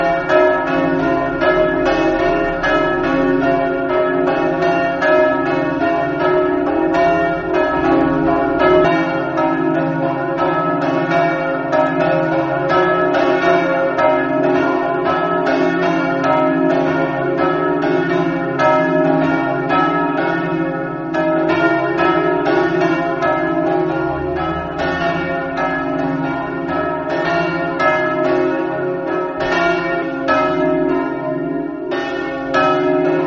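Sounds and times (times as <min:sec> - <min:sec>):
bells: 0:00.0 - 0:33.2.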